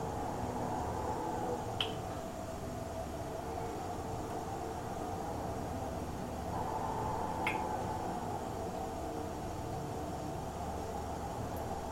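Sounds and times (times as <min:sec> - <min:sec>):
rain: 0:00.0 - 0:11.9
wind heard from inside a bathroom by a road in Paracas: 0:00.0 - 0:11.9.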